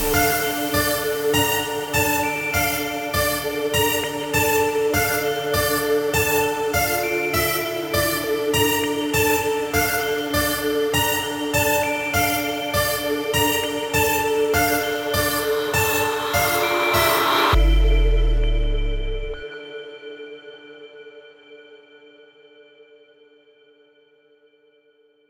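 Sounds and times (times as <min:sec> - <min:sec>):
dubstep music: 0:00.0 - 0:19.4.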